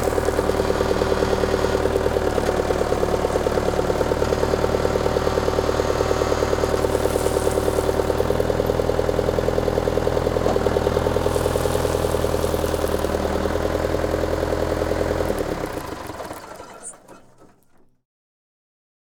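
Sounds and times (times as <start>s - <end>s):
backhoe: 0.0s - 18.0s.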